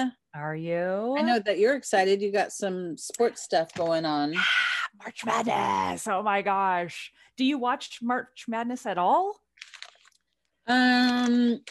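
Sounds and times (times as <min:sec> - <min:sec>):
speech: 0:00.0 - 0:09.4, 0:10.7 - 0:11.6
plastic being crumpled: 0:09.6 - 0:10.3.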